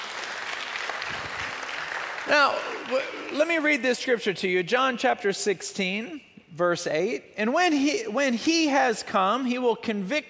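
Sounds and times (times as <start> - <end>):
applause: 0.0 - 3.8
speech: 2.3 - 10.2.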